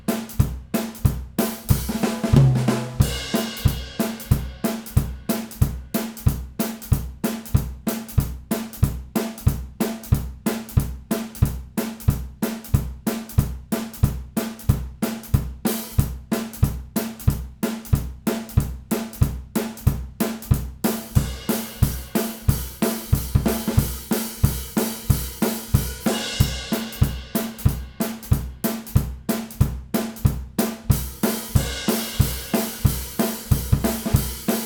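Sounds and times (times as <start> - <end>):
drums in stereo: 0.0 - 34.6.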